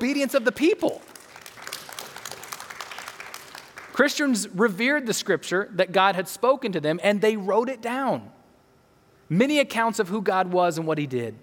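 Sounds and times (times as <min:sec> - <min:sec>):
speech: 0:00.0 - 0:01.1, 0:04.0 - 0:08.4, 0:09.3 - 0:11.4
audience applause: 0:00.0 - 0:04.0.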